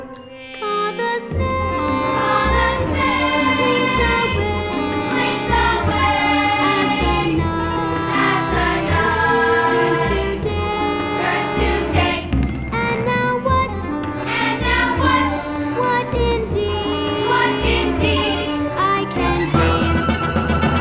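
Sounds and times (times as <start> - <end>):
person singing: 0.6 - 20.6.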